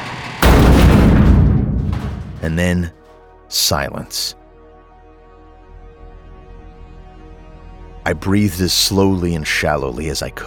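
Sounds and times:
creature smashing against garage wall: 0.4s - 2.9s
deep booming rumble: 0.4s - 2.9s
speech: 2.4s - 4.4s, 8.1s - 10.4s.

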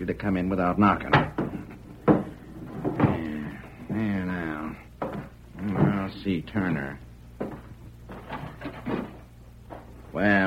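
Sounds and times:
speech: 0.0s - 1.4s, 6.2s - 7.0s, 10.2s - 10.4s
heavy wooden thuds of a door being barred: 1.0s - 6.4s, 7.4s - 10.0s.

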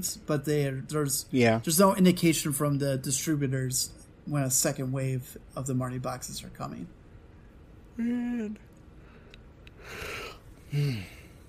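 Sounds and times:
speech: 0.0s - 7.0s, 8.0s - 8.7s, 9.8s - 11.2s
person yawning: 9.9s - 11.3s.

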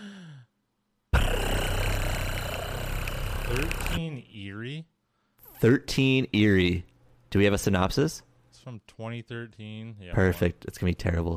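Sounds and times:
wheel-spinning sound effect whirring rattle with deep rumble: 1.2s - 4.0s
speech: 3.5s - 5.0s, 5.6s - 11.3s.

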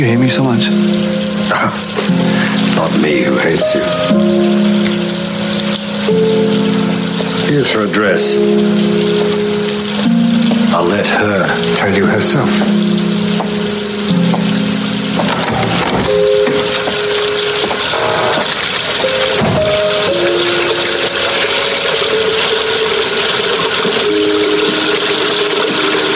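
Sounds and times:
speech: 0.0s - 5.0s, 7.5s - 9.4s, 10.8s - 13.2s
water left running: 0.0s - 26.1s.

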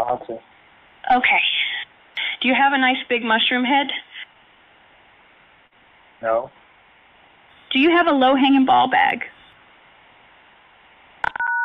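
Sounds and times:
faint phone line hiss: 0.0s - 11.2s
speech: 0.1s - 1.6s, 2.4s - 4.1s, 6.2s - 6.6s, 7.7s - 9.3s
telephone keypad key-press tones: 11.2s - 11.6s.

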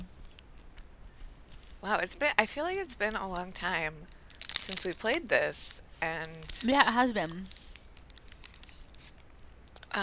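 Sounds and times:
speech: 1.8s - 7.6s
snack wrapper crinkling: 4.0s - 9.6s.

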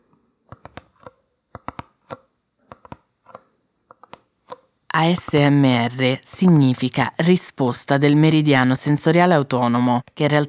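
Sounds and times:
fingertips tapping on a small paper box: 0.4s - 5.6s
speech: 5.0s - 10.4s.

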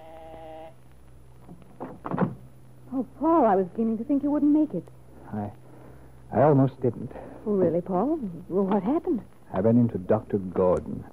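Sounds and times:
long impatient door buzzer ring: 0.0s - 0.8s
speech: 3.0s - 5.6s, 6.3s - 11.1s.

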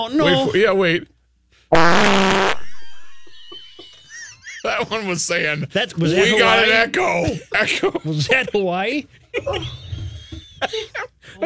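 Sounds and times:
speech: 0.0s - 1.1s, 1.7s - 2.6s, 4.6s - 9.8s, 10.6s - 11.4s
fart: 1.7s - 2.6s
laughter: 2.6s - 5.2s, 6.1s - 11.4s.

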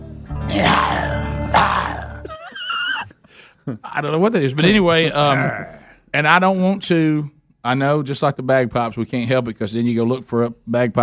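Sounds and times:
person growling like a lion: 0.5s - 2.3s
speech: 3.7s - 11.0s.

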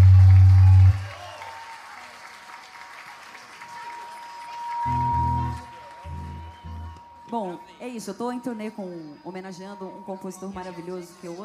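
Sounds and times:
audience applause: 0.0s - 7.2s
speech: 7.4s - 11.4s.

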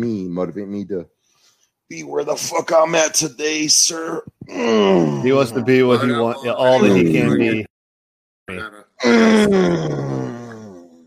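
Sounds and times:
speech: 0.0s - 1.2s, 1.9s - 7.7s, 8.5s - 10.4s
deep voiced strained grunt and groan: 4.5s - 6.9s, 8.6s - 11.0s.

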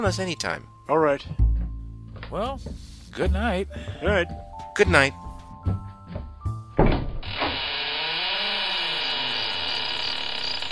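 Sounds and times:
speech: 0.0s - 1.4s, 2.3s - 5.8s
dull wooden thumps: 1.2s - 7.4s
door swinging open with long creak: 6.8s - 10.6s.

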